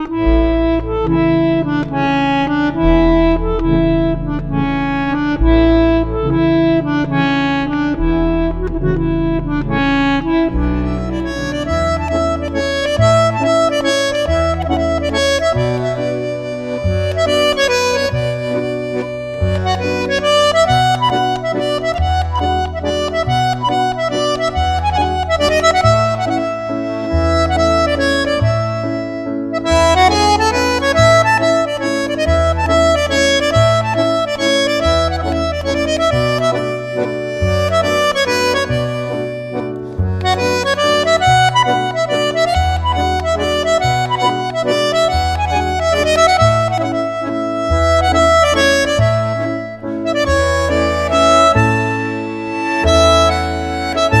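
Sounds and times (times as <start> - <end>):
waltz music: 0.0 - 54.1.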